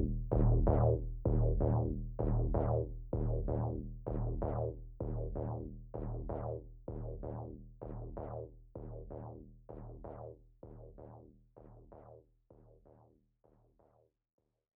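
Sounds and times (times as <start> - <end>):
bass sound: 0.0 - 10.2.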